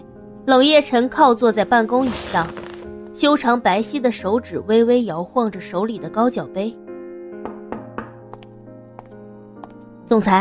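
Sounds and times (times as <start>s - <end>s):
speech: 0.4s - 2.6s, 3.2s - 6.8s, 10.1s - 10.3s
knocking on office door: 7.4s - 8.4s.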